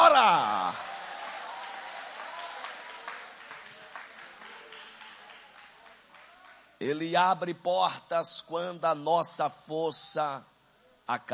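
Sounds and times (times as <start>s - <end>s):
audience applauding: 0.0s - 6.7s
speech: 6.8s - 10.5s, 11.1s - 11.3s.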